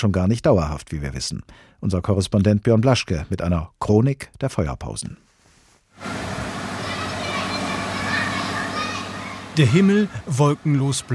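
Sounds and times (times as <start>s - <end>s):
speech: 0.0s - 5.2s, 9.6s - 11.1s
children shouting while playing in a street: 6.7s - 10.0s.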